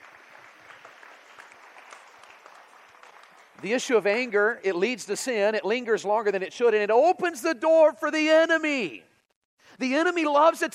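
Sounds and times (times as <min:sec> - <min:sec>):
audience applause: 0:00.0 - 0:04.3
speech: 0:03.6 - 0:09.1, 0:09.8 - 0:10.7.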